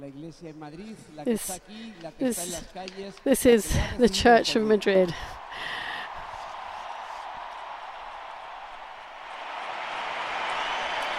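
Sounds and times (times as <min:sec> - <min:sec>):
speech: 0:00.0 - 0:05.8
applause: 0:05.7 - 0:11.1.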